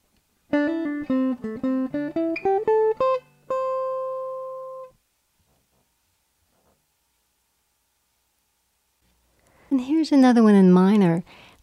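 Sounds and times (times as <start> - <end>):
guitar phrase with hammer-on and pull-off: 0.5 - 4.9
speech: 9.8 - 11.6.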